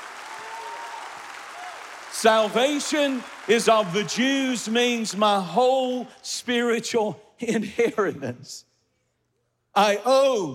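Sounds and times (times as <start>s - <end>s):
audience clapping hands: 0.0s - 6.0s
speech: 2.2s - 8.7s, 9.8s - 10.5s.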